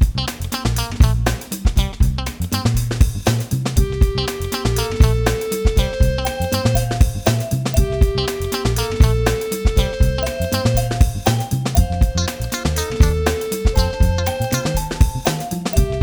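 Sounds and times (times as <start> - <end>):
blues music: 0.2 - 16.0.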